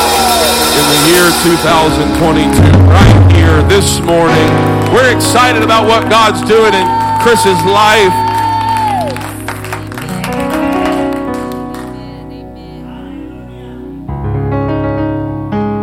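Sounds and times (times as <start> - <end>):
sustained organ or keyboard chords: 0.0 - 15.8
speech: 0.8 - 8.2
audience clapping hands in praise: 2.9 - 12.4.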